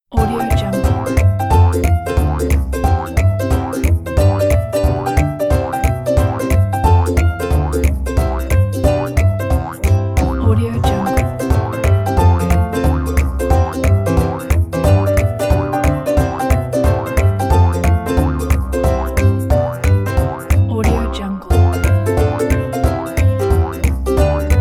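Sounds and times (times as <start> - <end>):
funny Easter bunny jumping sound: 0.1 - 24.6.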